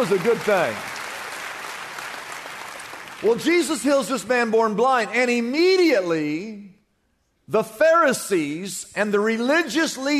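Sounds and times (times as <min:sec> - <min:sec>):
speech: 0:00.0 - 0:00.9, 0:03.2 - 0:06.7, 0:07.5 - 0:10.1
audience applause: 0:00.0 - 0:03.6.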